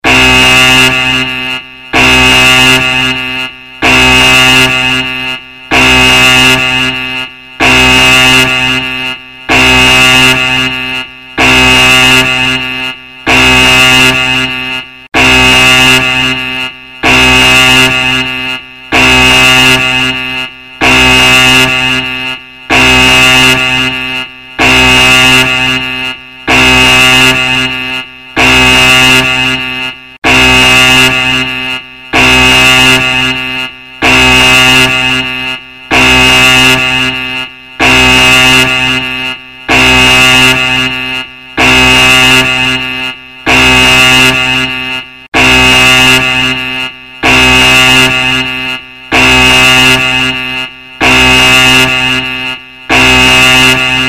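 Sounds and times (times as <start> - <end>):
alarm: 0.0 - 54.0.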